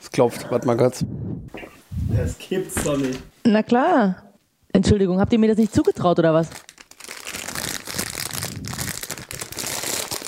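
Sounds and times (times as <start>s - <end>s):
speech: 0.2s - 6.7s
plastic wrappers crinkling: 5.5s - 10.2s.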